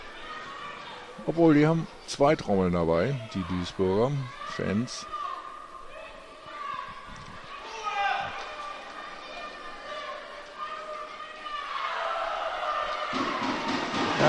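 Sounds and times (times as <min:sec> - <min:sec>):
speech: 0:01.2 - 0:05.2
Duisburg football players' circle shouting loudly: 0:03.2 - 0:14.2.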